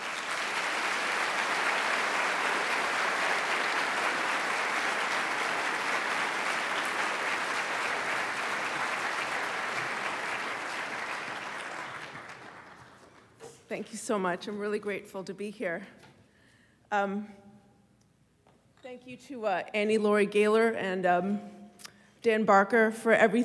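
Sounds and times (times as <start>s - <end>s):
Freedom From Religion Foundation audience applause welcoming a speaker: 0.0s - 13.4s
speech: 13.7s - 16.1s, 16.9s - 17.4s, 19.0s - 21.6s, 22.2s - 23.4s.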